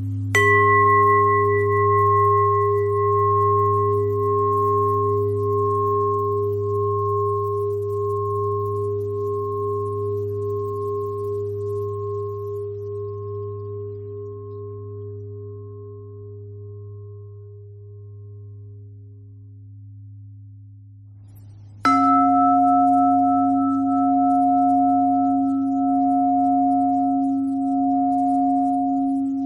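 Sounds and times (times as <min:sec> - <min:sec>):
bells ringing: 0:00.1 - 0:12.7, 0:21.9 - 0:29.3.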